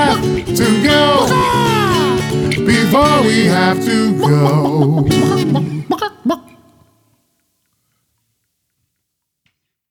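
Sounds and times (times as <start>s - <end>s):
vocals: 0.0s - 7.2s.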